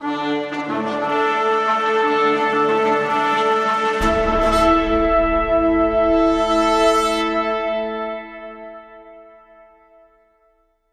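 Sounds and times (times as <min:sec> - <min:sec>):
fanfare: 0:00.2 - 0:08.4.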